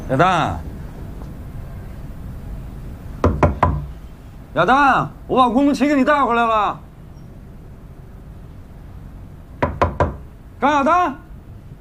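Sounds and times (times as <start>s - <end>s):
speech: 0.1s - 0.7s, 4.5s - 6.8s, 10.6s - 11.2s
knocking on a door: 3.2s - 4.0s, 9.6s - 10.3s.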